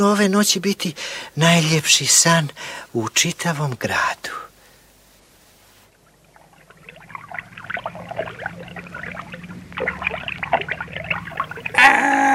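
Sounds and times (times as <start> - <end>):
speech: 0.0 - 4.5
river water babbling: 5.8 - 11.8.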